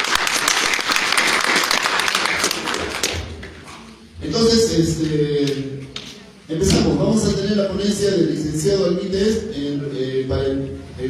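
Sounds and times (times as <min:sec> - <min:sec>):
audience applause: 0:00.0 - 0:03.3
speech: 0:04.4 - 0:05.7, 0:06.5 - 0:11.0.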